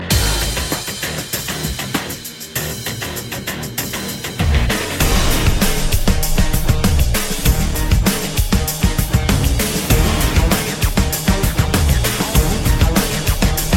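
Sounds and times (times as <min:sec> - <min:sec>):
beats: 0:00.0 - 0:13.7.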